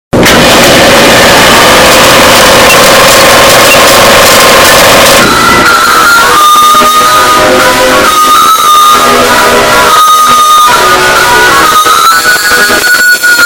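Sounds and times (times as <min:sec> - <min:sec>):
loud distorted earrape audio: 0:00.1 - 0:13.4.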